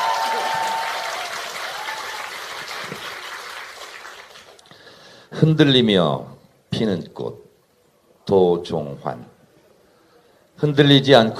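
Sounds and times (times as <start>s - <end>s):
audience applause: 0.0s - 4.6s
speech: 5.4s - 7.4s, 8.3s - 9.3s, 10.6s - 11.3s.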